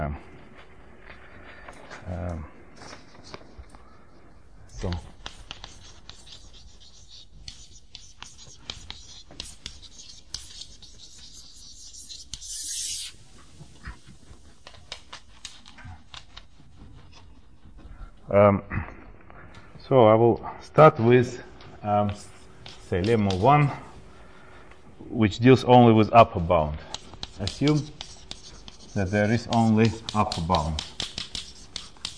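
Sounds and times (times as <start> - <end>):
speech: 0.0 - 0.4, 2.1 - 2.6, 4.8 - 5.1, 18.3 - 18.9, 19.9 - 22.3, 22.9 - 23.9, 25.1 - 28.0, 29.0 - 30.9
scratchy writing strokes as a mathematical proof is written out: 4.7 - 18.0, 21.9 - 23.6, 26.9 - 32.1.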